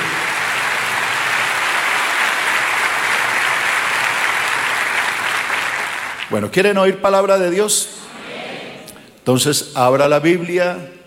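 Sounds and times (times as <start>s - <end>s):
audience applause: 0.0s - 6.4s
speech: 6.4s - 8.0s, 9.3s - 11.0s.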